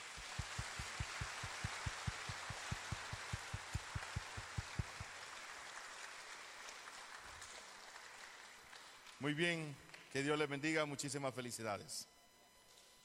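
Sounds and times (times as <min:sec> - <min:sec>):
audience applauding in church: 0:00.0 - 0:09.2
speech: 0:09.2 - 0:12.1.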